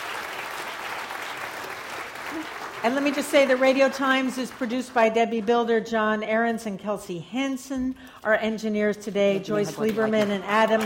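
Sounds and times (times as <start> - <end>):
people standing up and applauding very loudly: 0.0 - 5.5, 9.7 - 10.8
speech: 2.4 - 10.8.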